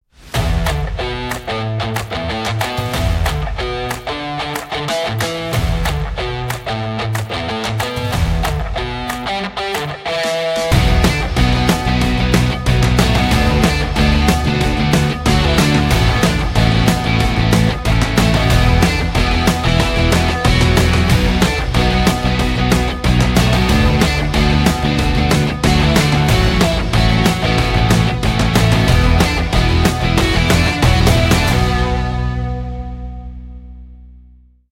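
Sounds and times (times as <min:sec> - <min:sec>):
energy rock music: 0:00.2 - 0:33.8.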